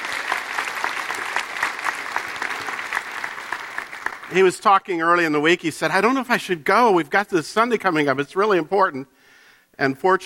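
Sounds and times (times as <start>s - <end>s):
crowd clapping: 0.0s - 4.6s
speech: 4.3s - 9.2s, 9.8s - 10.2s.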